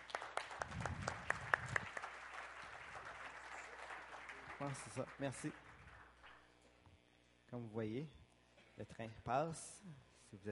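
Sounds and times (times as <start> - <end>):
audience applauding after a French-language talk: 0.0 - 6.4
speech: 4.6 - 5.7, 7.5 - 8.2, 8.8 - 10.5.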